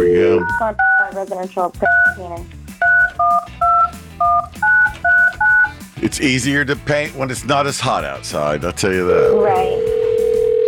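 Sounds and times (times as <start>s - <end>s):
touch-tone DTMF beeps dialing a telephone number: 0.0s - 1.2s, 1.8s - 2.2s, 2.8s - 5.7s
speech: 0.4s - 2.6s, 6.0s - 9.9s.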